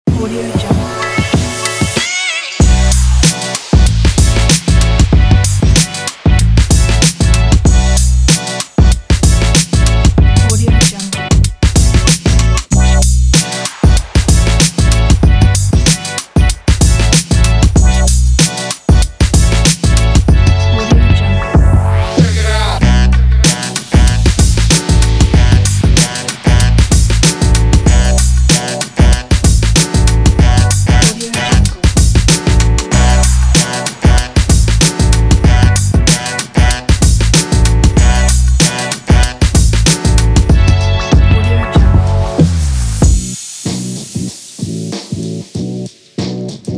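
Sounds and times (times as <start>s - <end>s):
boom bap hip hop beat: 0.1s - 46.7s.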